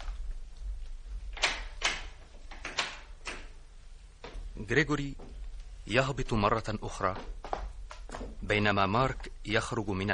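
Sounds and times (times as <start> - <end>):
low hum: 0.0 - 10.1
bathroom door being shut with wooden knocks and latch clicks: 1.4 - 3.6
speech: 4.6 - 5.3, 5.9 - 7.4, 8.4 - 10.1.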